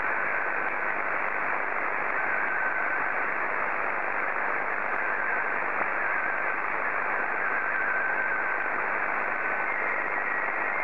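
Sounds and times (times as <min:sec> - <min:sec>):
Scottie 1 slow-scan television signal: 0:00.0 - 0:10.8.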